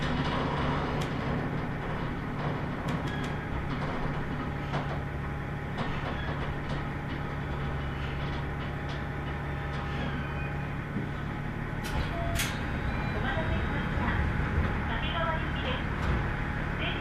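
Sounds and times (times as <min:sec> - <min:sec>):
clicks and sharp squeaks: 0:00.0 - 0:05.1, 0:05.7 - 0:10.8
Tenryu Hamanako Railway train rumbling: 0:00.0 - 0:16.9.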